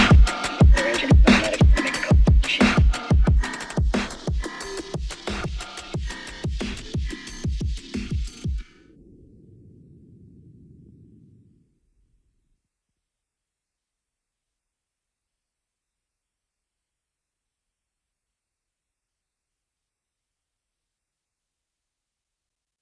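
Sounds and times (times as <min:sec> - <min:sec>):
military phonk music: 0:00.0 - 0:08.6.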